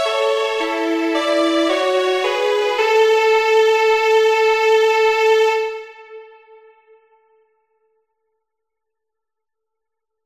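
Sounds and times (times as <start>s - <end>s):
waltz music: 0.0s - 6.4s.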